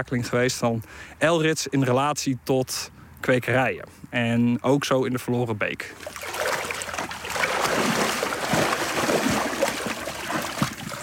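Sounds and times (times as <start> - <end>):
speech: 0.0 - 6.5
stirring stream bed before lifting dip net: 5.9 - 11.0.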